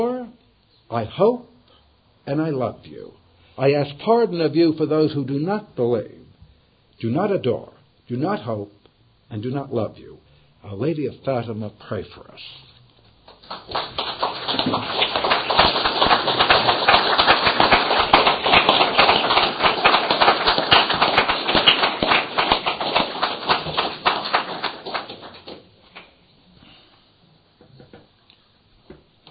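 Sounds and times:
speech: 0.0 - 1.5, 2.3 - 6.2, 7.0 - 12.7, 13.5 - 15.0
audience applause: 13.3 - 25.7.

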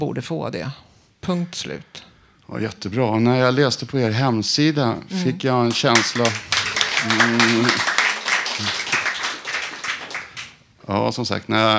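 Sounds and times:
speech: 0.0 - 7.9, 8.6 - 8.8, 10.9 - 11.7
audience applause: 5.6 - 10.6.

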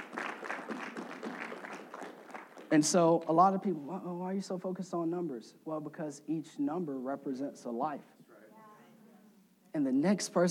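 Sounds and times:
audience clapping: 0.0 - 3.5
speech: 2.7 - 8.1, 9.8 - 10.4.

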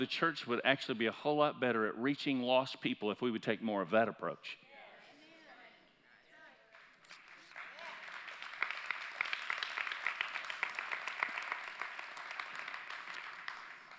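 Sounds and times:
speech: 0.0 - 4.6
audience applause: 7.2 - 13.9.

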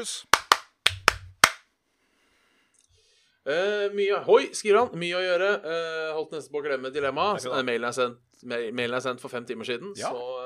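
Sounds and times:
speech: 0.0 - 0.3, 3.4 - 10.4
podcast jingle of rhythmic claps: 0.1 - 1.6.

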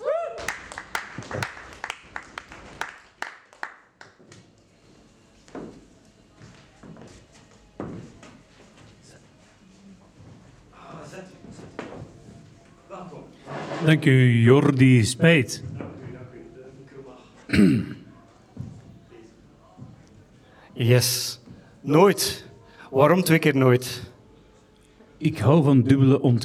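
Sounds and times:
audience applause: 0.3 - 4.4
speech: 13.8 - 15.7, 20.9 - 24.1, 25.2 - 26.4.

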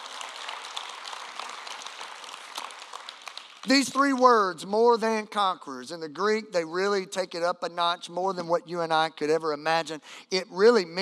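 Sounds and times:
audience clapping hands: 0.0 - 5.0
speech: 3.6 - 11.0.

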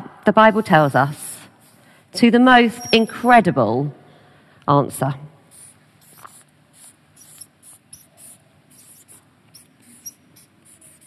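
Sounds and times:
speech: 0.2 - 1.3, 2.1 - 4.0, 4.7 - 5.3
squeaky pen running out while writing: 2.8 - 3.2, 5.6 - 11.0.

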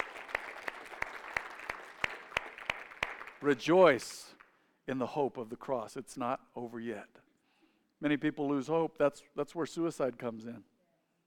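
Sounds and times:
audience clapping hands: 0.0 - 4.6
speech: 3.4 - 7.3, 8.0 - 10.7.

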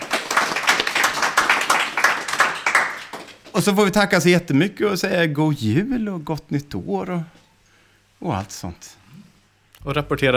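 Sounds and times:
audience applause: 0.0 - 3.5
speech: 3.6 - 7.4, 8.2 - 9.0, 9.8 - 10.3.

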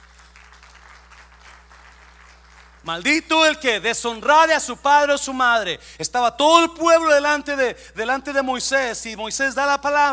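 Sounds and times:
audience applause: 0.0 - 2.9
speech: 2.8 - 10.1.

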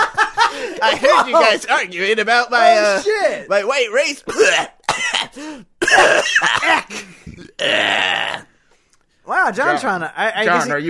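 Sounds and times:
laughter: 0.0 - 1.7
speech: 0.8 - 8.5, 9.3 - 10.8
choking cough on a voicemail: 4.3 - 8.4.

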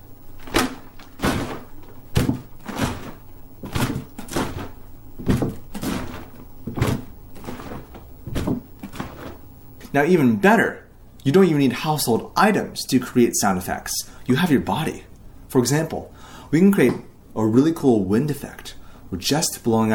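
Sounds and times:
milk jug imitating waves hitting a boat: 0.4 - 9.5
speech: 10.0 - 19.9.

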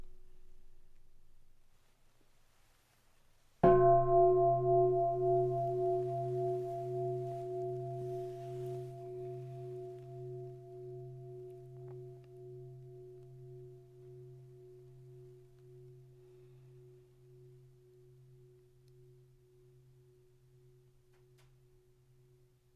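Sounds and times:
meditation bell ringing: 3.6 - 20.1.

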